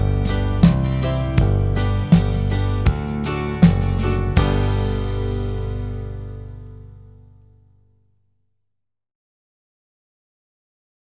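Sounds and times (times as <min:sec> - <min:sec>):
bass: 0:00.0 - 0:08.2.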